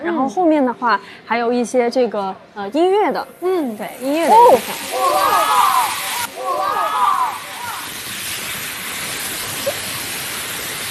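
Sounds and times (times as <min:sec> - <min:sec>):
speech: 0:00.2 - 0:05.9
crackling electrical discharge: 0:03.4 - 0:10.8.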